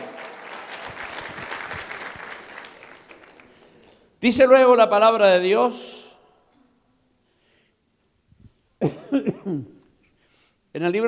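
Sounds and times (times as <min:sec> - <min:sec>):
audience clapping: 0:00.0 - 0:04.1
speech: 0:04.2 - 0:06.0, 0:10.8 - 0:11.0.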